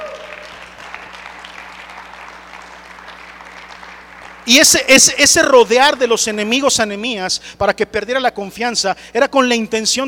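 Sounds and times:
audience applauding: 0.0s - 5.1s
speech: 4.4s - 10.0s.

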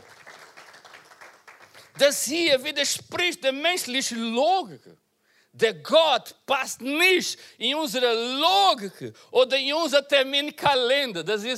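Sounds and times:
audience applause: 0.0s - 2.0s
speech: 2.0s - 11.5s.

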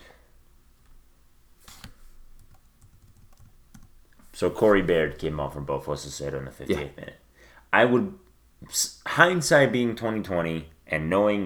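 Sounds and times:
soft hiss: 0.0s - 11.4s
computer clicks and keystrokes while editing timelines: 1.7s - 4.0s
speech: 4.4s - 11.4s.

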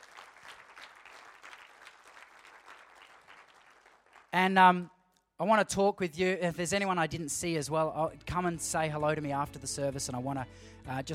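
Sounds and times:
audience applause: 0.0s - 4.3s
speech: 4.4s - 11.1s.

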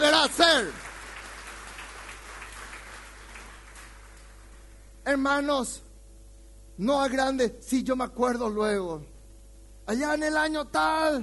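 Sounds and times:
speech: 0.0s - 0.9s, 5.0s - 5.8s, 6.8s - 9.1s, 9.9s - 11.2s
crowd applauding: 0.0s - 4.6s.

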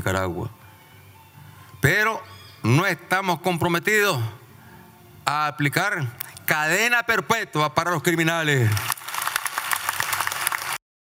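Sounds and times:
speech: 0.0s - 0.6s, 1.8s - 4.4s, 5.3s - 8.9s
audience applauding: 8.6s - 10.8s.

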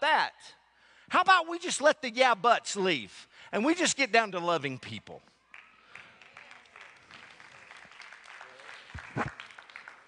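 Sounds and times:
speech: 0.2s - 5.3s
sparse hand claps from audience: 5.5s - 10.0s.

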